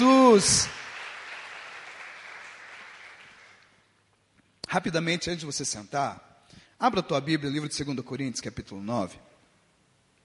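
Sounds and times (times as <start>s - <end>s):
speech: 0.0s - 0.8s, 4.7s - 9.3s
audience applauding: 0.0s - 3.8s.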